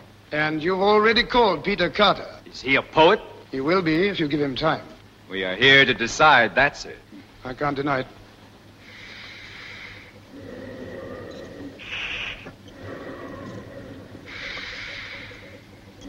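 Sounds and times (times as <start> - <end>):
low constant hum: 0.0 - 16.0
speech: 0.3 - 8.2
operating theatre bellows inflating and deflating rhythmically: 8.8 - 16.0.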